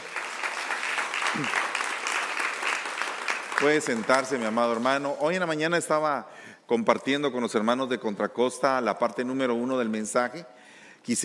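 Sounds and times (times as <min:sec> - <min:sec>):
audience applause: 0:00.0 - 0:04.8
speech: 0:01.4 - 0:01.6, 0:03.6 - 0:11.2.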